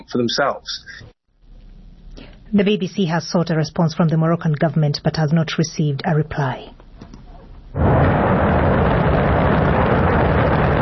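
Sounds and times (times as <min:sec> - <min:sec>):
speech: 0:00.1 - 0:01.2, 0:02.5 - 0:06.8
Shenzhou 23 rocket blasting off from the Jingguan Launch Center in Inner Mongolia: 0:07.7 - 0:10.8.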